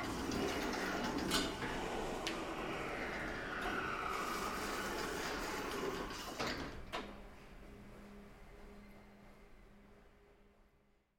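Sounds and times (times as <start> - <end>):
electric door: 0.0 - 7.2.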